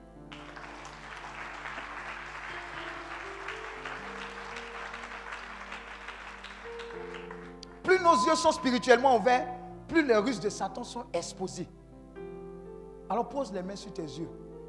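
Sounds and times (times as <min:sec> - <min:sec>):
soft sustained keyboard chords: 0:00.0 - 0:14.6
church congregation clapping to acclaim God: 0:00.3 - 0:08.6
speech: 0:08.0 - 0:11.8, 0:13.1 - 0:14.4.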